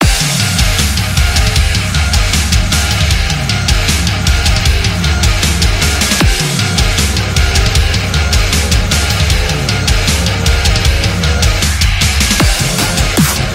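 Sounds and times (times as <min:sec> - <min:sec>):
intro music: 0:00.0 - 0:13.5.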